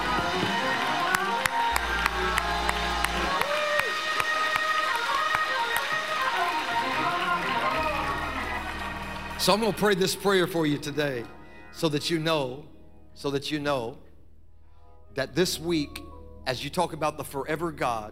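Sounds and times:
hand clapping: 0.0s - 10.0s
speech: 9.5s - 14.0s, 15.1s - 18.1s.

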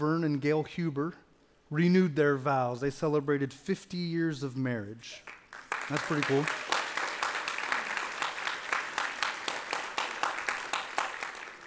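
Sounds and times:
speech: 0.0s - 6.7s
audience applause: 5.5s - 11.6s.

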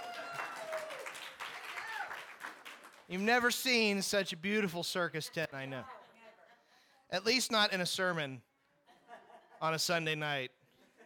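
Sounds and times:
audience applause: 0.0s - 3.2s
speech: 3.1s - 6.0s, 7.1s - 8.5s, 9.6s - 10.6s.

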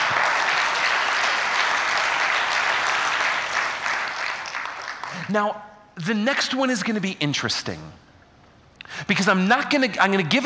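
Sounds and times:
audience clapping: 0.0s - 5.4s
speech: 5.3s - 8.0s, 8.9s - 10.4s.

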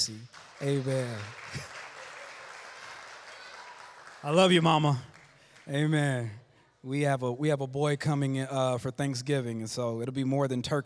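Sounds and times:
speech: 0.0s - 1.7s, 4.2s - 5.1s, 5.7s - 10.8s
church congregation applause: 0.0s - 6.4s.

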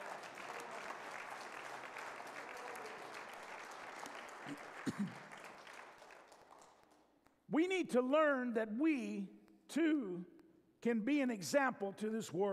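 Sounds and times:
audience applauding: 0.0s - 7.1s
speech: 4.5s - 5.3s, 7.5s - 12.5s.

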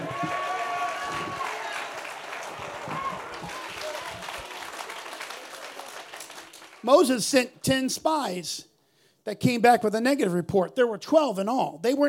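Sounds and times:
audience shouting praise: 0.0s - 6.0s
audience clapping: 0.0s - 7.6s
speech: 6.8s - 12.0s.

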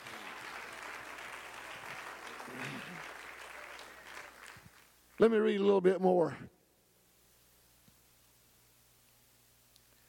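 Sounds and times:
audience clapping hands: 0.0s - 5.4s
speech: 2.5s - 3.1s, 5.2s - 6.5s.

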